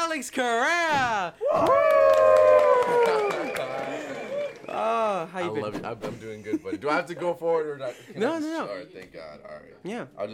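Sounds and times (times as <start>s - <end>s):
speech: 0.2s - 3.8s, 4.8s - 10.3s
long sustained whoop falling in pitch: 1.4s - 3.6s
audience clapping: 1.6s - 5.1s.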